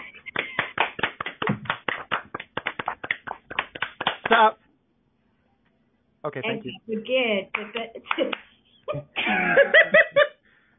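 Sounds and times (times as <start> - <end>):
group of people clapping hands: 0.1 - 4.5, 7.5 - 8.6
speech: 4.3 - 4.6, 6.2 - 10.0.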